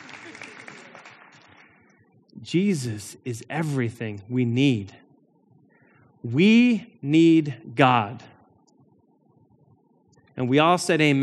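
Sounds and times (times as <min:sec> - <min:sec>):
audience clapping: 0:00.0 - 0:02.1
speech: 0:02.5 - 0:05.0, 0:06.2 - 0:08.3, 0:10.4 - 0:11.2.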